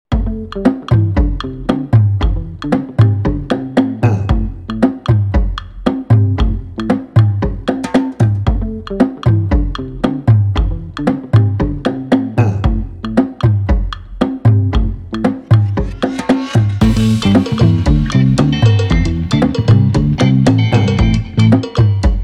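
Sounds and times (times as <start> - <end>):
percussion blocks: 0.1 - 22.2
cowbells: 16.9 - 22.2.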